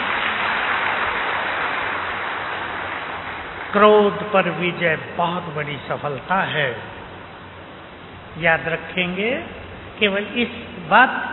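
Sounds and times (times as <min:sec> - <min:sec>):
crowd applause: 0:00.0 - 0:04.2
speech: 0:03.7 - 0:07.0, 0:08.4 - 0:11.3.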